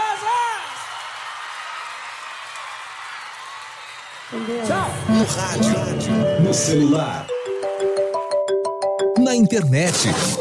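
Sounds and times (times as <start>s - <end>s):
audience applause: 0.0s - 8.3s
speech: 4.3s - 7.4s, 9.3s - 10.4s.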